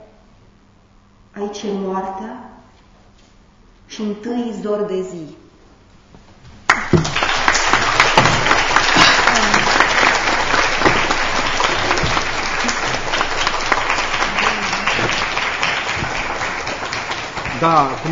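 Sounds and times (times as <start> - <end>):
speech: 1.4 - 2.5, 4.0 - 5.4, 17.6 - 18.1
audience applause: 6.7 - 18.1.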